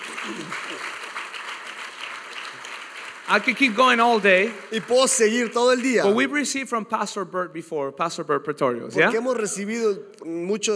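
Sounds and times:
audience applause: 0.0s - 6.5s
speech: 0.3s - 1.0s, 3.3s - 10.7s.

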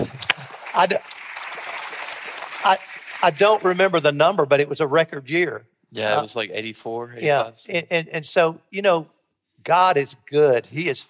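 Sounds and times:
audience clapping: 0.0s - 4.4s
speech: 0.8s - 1.2s, 2.6s - 11.0s.

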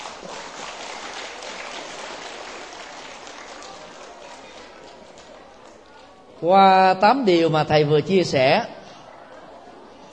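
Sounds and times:
crowd of children clapping loudly: 0.0s - 5.8s
speech: 6.4s - 8.8s.

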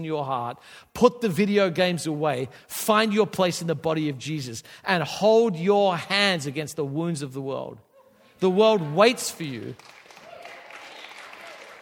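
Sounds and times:
speech: 0.0s - 10.0s
audience clapping: 8.8s - 11.8s.

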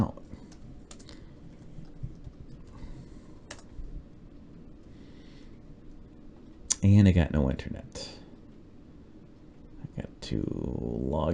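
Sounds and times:
soft hiss: 0.0s - 11.3s
faint typing on a computer keyboard: 0.5s - 2.8s, 3.5s - 3.7s
speech: 6.8s - 8.2s, 10.0s - 11.3s.

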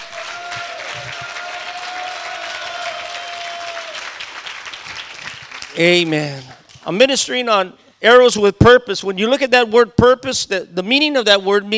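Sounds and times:
audience clapping hands: 0.0s - 6.9s
speech: 5.8s - 11.7s.

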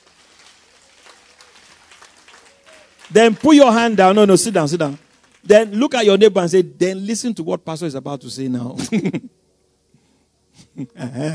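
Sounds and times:
audience clapping: 0.0s - 6.3s
speech: 3.1s - 9.4s, 10.8s - 11.3s.

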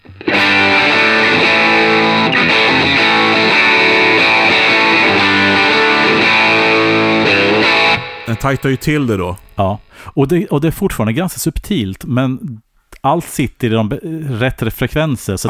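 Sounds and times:
distorted instrument chords through low-cut and high-cut filter: 0.0s - 9.8s
speech: 8.4s - 15.4s.

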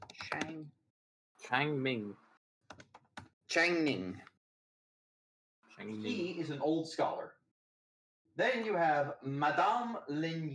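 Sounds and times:
typing notes on a keyboard: 0.0s - 0.6s, 2.7s - 3.3s
speech: 0.3s - 0.8s, 1.4s - 2.2s, 3.5s - 4.3s, 5.8s - 7.4s, 8.4s - 10.5s.

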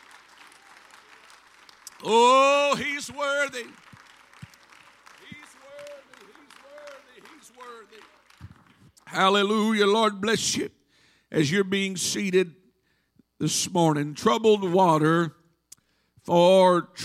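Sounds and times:
audience clapping hands in worship: 0.0s - 9.8s
speech: 2.0s - 3.8s, 9.1s - 12.6s, 13.4s - 15.4s, 16.2s - 17.0s.

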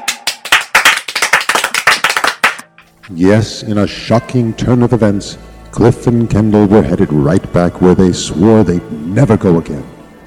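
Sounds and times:
audience clapping prompted by an applause sign: 0.0s - 2.7s
speech: 3.1s - 9.9s.

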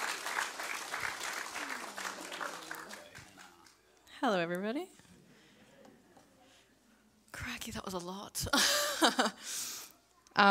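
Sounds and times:
church audience applauding to welcome a worship leader: 0.0s - 3.8s
speech: 4.2s - 5.1s, 7.6s - 9.7s.

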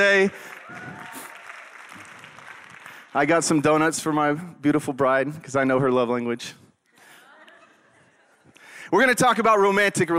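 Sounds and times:
speech: 0.0s - 1.2s, 3.1s - 6.6s, 8.9s - 10.1s
audience clapping: 0.0s - 3.6s.

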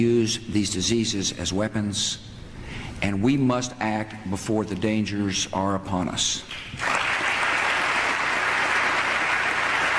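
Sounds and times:
speech: 0.0s - 2.4s, 3.0s - 7.0s
audience applause in played recording: 6.8s - 9.9s.

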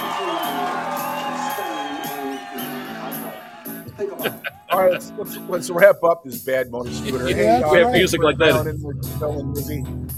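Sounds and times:
crowd applauding and cheering: 0.0s - 5.0s
laughter: 0.1s - 5.8s, 6.8s - 8.6s
speech: 4.0s - 10.1s.

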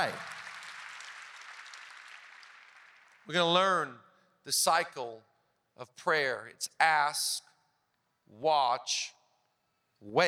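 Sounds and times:
speech: 0.0s - 0.3s, 3.3s - 7.5s, 8.3s - 9.2s, 10.0s - 10.2s
audience clapping: 0.0s - 3.5s.

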